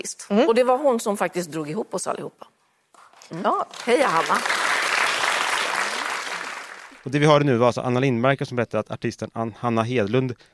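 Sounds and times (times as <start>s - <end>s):
speech: 0.0s - 2.6s, 3.3s - 4.6s, 7.0s - 10.5s
studio audience applause: 3.0s - 7.1s.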